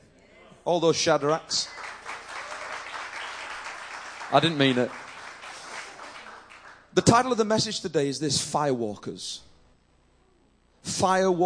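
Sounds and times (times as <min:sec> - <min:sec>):
speech: 0:00.7 - 0:01.8, 0:04.3 - 0:05.0, 0:07.0 - 0:09.5, 0:10.8 - 0:11.4
audience applause: 0:01.1 - 0:07.0.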